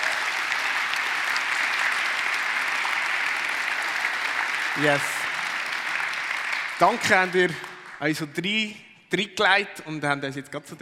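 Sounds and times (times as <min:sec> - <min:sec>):
audience applause: 0:00.0 - 0:08.3
speech: 0:04.8 - 0:05.2, 0:06.8 - 0:10.8.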